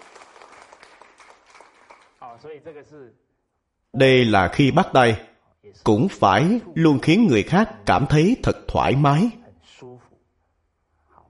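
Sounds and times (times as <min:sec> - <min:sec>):
audience applause: 0:00.0 - 0:02.3
speech: 0:02.3 - 0:03.3, 0:03.9 - 0:09.9.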